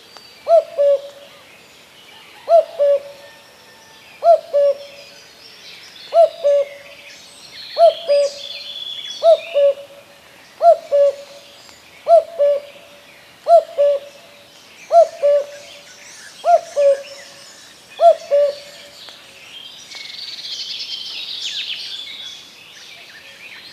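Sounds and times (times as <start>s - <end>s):
common cuckoo giving two-note cu-coo calls: 0.4s - 1.4s, 2.4s - 5.1s, 6.1s - 7.0s, 7.8s - 10.0s, 10.6s - 14.3s, 14.9s - 17.4s, 18.0s - 19.0s.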